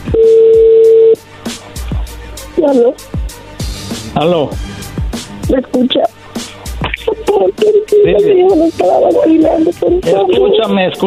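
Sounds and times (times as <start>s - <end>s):
short beeps and clicks as a call connects: 0.1s - 1.2s
steady electronic phone tone: 0.1s - 1.2s
speech: 2.7s - 3.2s, 4.2s - 4.8s, 5.5s - 6.2s, 7.3s - 11.0s.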